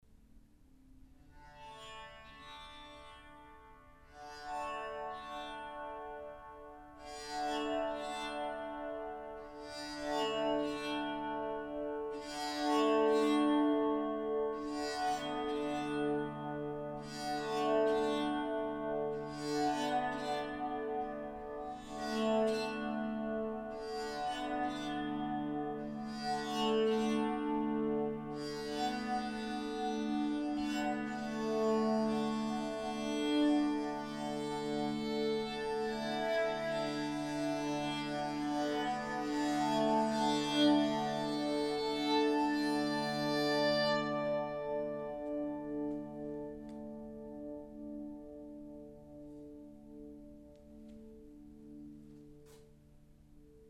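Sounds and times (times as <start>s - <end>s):
baritone bowed psaltery: 1.4s - 52.9s.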